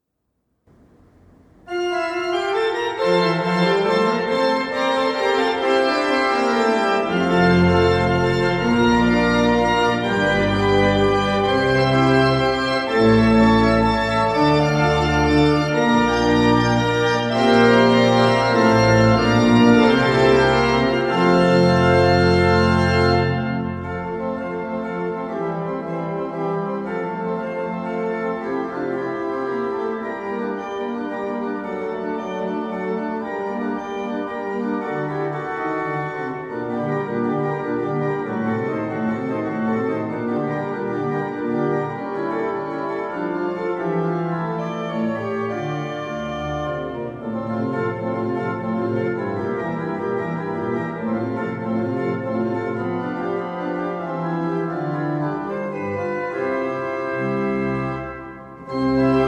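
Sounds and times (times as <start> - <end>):
prelude and fugue: 0.7 - 59.2.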